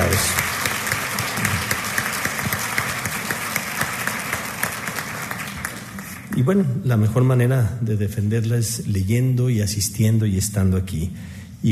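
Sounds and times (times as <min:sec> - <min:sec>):
audience applause: 0:00.0 - 0:06.3
speech: 0:06.4 - 0:11.7.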